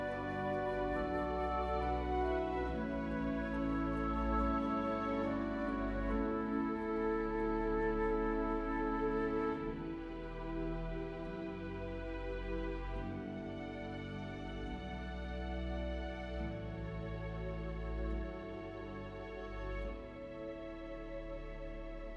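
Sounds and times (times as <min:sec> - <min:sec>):
calm music: 0:00.0 - 0:22.1.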